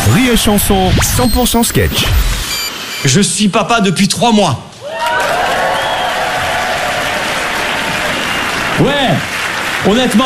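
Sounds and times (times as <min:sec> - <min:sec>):
speech: 0:00.2 - 0:02.2, 0:03.0 - 0:04.7, 0:08.8 - 0:10.2
audience applause: 0:04.9 - 0:10.2.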